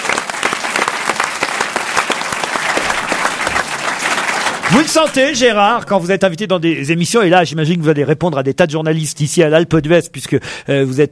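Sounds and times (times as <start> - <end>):
audience applause: 0.0 - 6.1
speech: 4.7 - 11.1.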